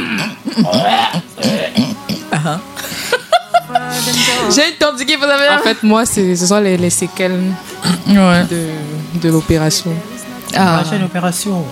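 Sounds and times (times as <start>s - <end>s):
person clearing throat: 0.0s - 3.1s, 7.8s - 8.2s
laughter: 2.4s - 4.6s
speech: 4.5s - 11.7s.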